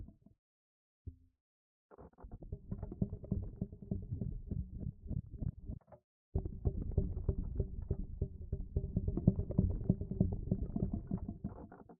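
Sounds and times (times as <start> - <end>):
rumble: 2.4 - 11.5.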